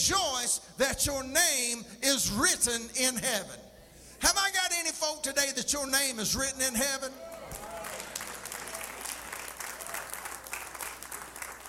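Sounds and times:
speech: 0.0s - 7.4s
audience clapping hands: 7.4s - 11.6s.

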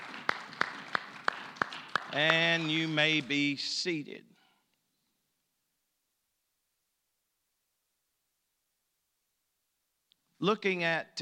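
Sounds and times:
audience hand clapping: 0.0s - 3.6s
speech: 2.1s - 4.3s, 10.4s - 11.2s.

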